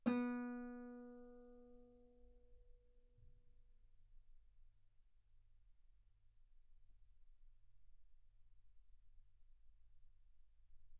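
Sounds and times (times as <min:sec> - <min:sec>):
guitar B3 note on B string played fortissimo: 0:00.0 - 0:01.4.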